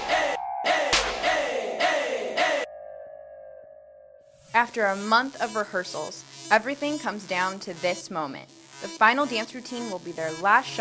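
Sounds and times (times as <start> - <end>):
crowd cheering: 0.0 - 2.7
speech: 4.5 - 10.7.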